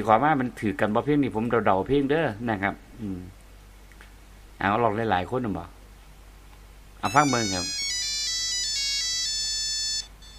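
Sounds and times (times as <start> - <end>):
speech: 0.0 - 3.4, 4.6 - 5.8, 7.0 - 7.8
telephone ringtone playing an electronic melody: 7.0 - 10.3.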